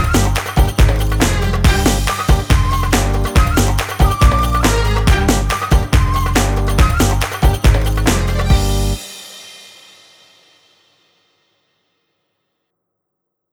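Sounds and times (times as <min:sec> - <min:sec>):
arabesk oryantal music: 0:00.0 - 0:09.6.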